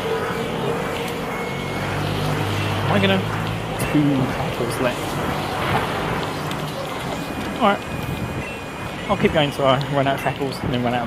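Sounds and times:
loud moped passing: 0:00.0 - 0:10.4
speech: 0:03.0 - 0:06.0, 0:07.6 - 0:08.1, 0:09.1 - 0:11.0.

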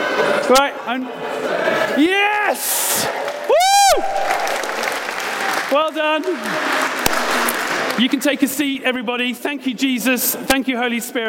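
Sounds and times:
speech: 0:00.5 - 0:04.7, 0:05.7 - 0:11.2
audience cheering: 0:02.2 - 0:08.1.

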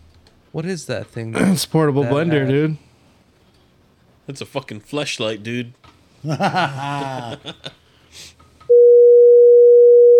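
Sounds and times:
speech: 0:00.5 - 0:02.9, 0:04.3 - 0:08.4
person chuckling: 0:06.2 - 0:07.8
laughter: 0:06.2 - 0:07.9
censor bleep tone: 0:08.7 - 0:10.1.

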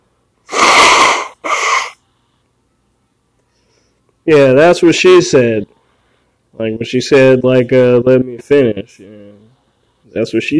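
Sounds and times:
person blowing their nose: 0:00.5 - 0:02.0
speech: 0:04.2 - 0:05.7, 0:06.6 - 0:09.4, 0:10.1 - 0:10.5.

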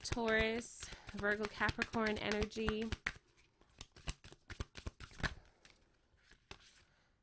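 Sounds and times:
taps as an Earthcraft oracle card is pulled: 0:00.0 - 0:05.8
shuffling Earthcraft oracle cards: 0:00.0 - 0:06.9
speech: 0:00.1 - 0:03.0.

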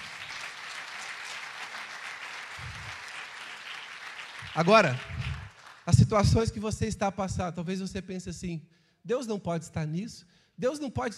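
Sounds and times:
audience applause: 0:00.0 - 0:05.9
speech: 0:04.5 - 0:05.1, 0:05.9 - 0:11.1.

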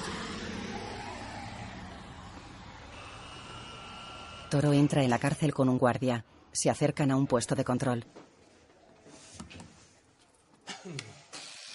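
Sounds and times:
bus pulling away along a city street: 0:00.0 - 0:05.6
speech: 0:04.5 - 0:08.4.

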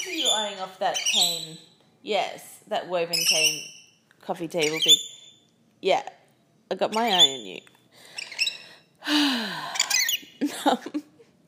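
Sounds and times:
pet birds chirping and squawking: 0:00.0 - 0:01.7, 0:03.0 - 0:05.4, 0:06.8 - 0:08.9, 0:09.6 - 0:10.4
speech: 0:00.2 - 0:05.1, 0:05.8 - 0:08.1, 0:09.0 - 0:09.8, 0:10.4 - 0:11.1.

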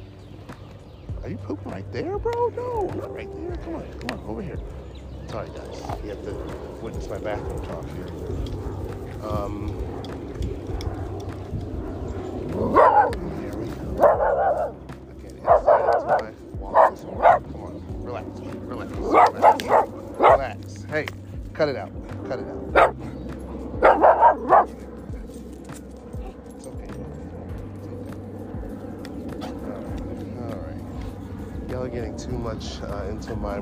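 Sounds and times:
steady low hum: 0:00.0 - 0:33.5
speech: 0:01.2 - 0:08.6, 0:09.2 - 0:09.8
dog barking: 0:12.5 - 0:14.8, 0:15.4 - 0:17.6, 0:19.0 - 0:20.5, 0:22.7 - 0:23.2, 0:23.8 - 0:25.0.

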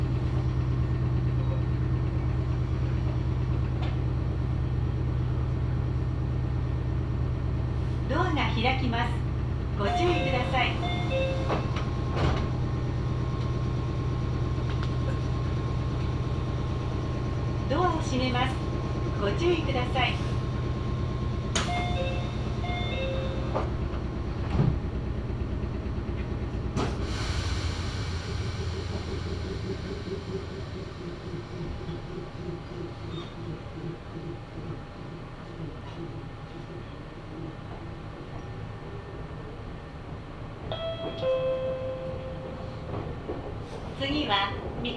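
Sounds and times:
Meitetsu Mikawa Line train rumble: 0:00.0 - 0:44.9
Meitetsu Mikawa Line train chimes: 0:09.7 - 0:24.4, 0:40.6 - 0:44.9.

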